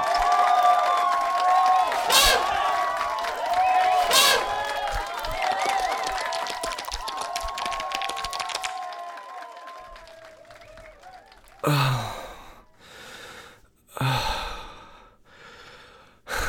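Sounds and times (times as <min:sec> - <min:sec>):
audience applause: 0:00.0 - 0:12.6.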